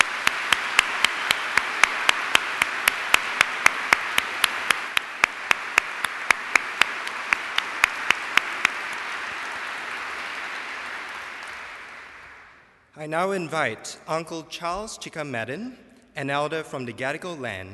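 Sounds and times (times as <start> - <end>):
round of applause: 0.0 - 12.9
speech: 13.0 - 17.7.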